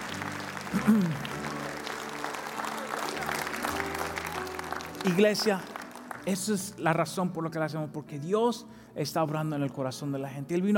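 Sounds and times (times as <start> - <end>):
audience applauding: 0.0 - 6.8
speech: 0.7 - 1.4, 5.0 - 10.7.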